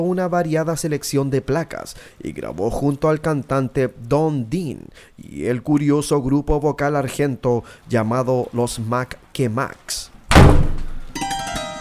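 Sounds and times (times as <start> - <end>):
speech: 0.0 - 10.6
door slamming shut: 10.3 - 11.2.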